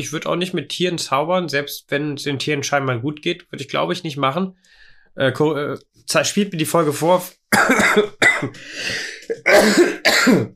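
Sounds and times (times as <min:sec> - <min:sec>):
speech: 0:00.0 - 0:10.5
sneeze or cough: 0:07.6 - 0:10.5.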